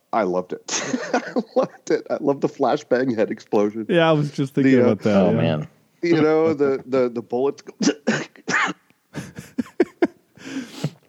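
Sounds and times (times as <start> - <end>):
speech: 0.1 - 8.0
laughter: 0.7 - 2.2, 9.1 - 10.2
harsh coughing fit: 7.7 - 9.6.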